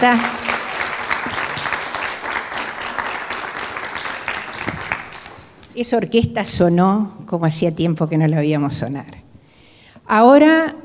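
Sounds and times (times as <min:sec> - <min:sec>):
speech: 0:00.0 - 0:00.3, 0:05.8 - 0:09.2, 0:10.1 - 0:10.8
audience applause: 0:00.0 - 0:05.6.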